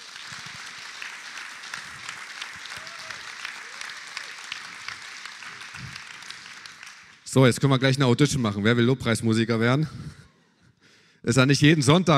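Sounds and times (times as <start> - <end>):
audience applause: 0.0 - 7.2
speech: 7.3 - 10.2, 11.2 - 12.1.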